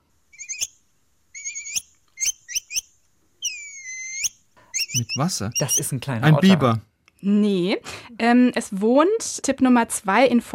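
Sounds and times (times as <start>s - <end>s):
capybara high whistling chirps: 0.3s - 0.8s, 1.4s - 5.9s
speech: 5.0s - 10.5s.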